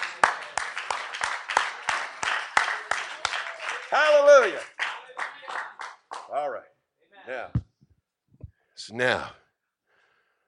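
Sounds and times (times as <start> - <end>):
clapping: 0.0 - 6.4
speech: 3.9 - 4.7, 8.9 - 9.4.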